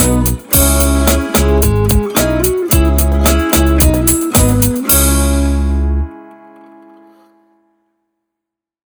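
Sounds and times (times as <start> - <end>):
relaxed chill music: 0.0 - 6.2.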